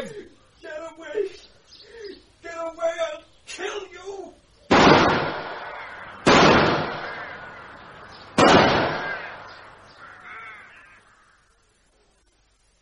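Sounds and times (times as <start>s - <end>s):
rifle shots: 4.7s - 9.9s.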